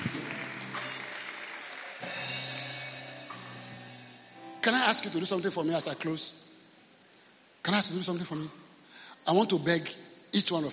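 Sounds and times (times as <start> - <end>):
church congregation clapping during a service: 0.0 - 3.5
speech: 4.6 - 6.5, 7.6 - 8.6, 9.2 - 10.7.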